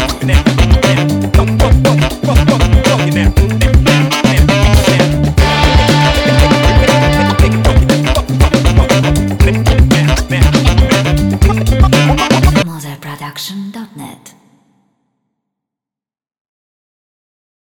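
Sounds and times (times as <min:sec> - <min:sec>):
catchy uplifting funky groove music: 0:00.0 - 0:12.6.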